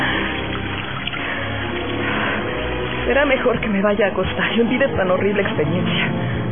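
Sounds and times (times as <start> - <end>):
icy water splashing onto a head and face: 0.0 - 3.7
speech: 3.1 - 6.4.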